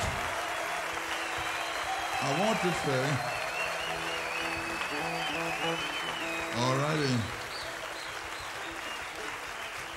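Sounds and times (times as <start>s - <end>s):
audience applauding: 0.0s - 9.9s
speech: 2.2s - 3.4s, 5.5s - 7.4s.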